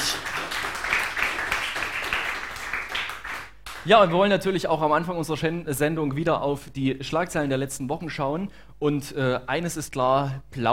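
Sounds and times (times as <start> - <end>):
audience applause: 0.0 - 3.8
speech: 3.8 - 10.7.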